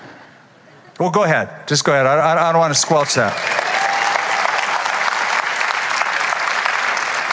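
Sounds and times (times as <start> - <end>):
speech: 1.0 - 3.6
crowd clapping: 2.8 - 7.3.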